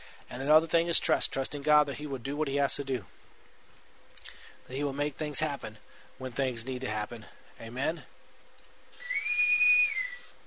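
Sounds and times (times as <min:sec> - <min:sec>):
speech: 0:00.3 - 0:03.2, 0:04.7 - 0:08.1
whistle signalling the end of the show: 0:09.0 - 0:10.3.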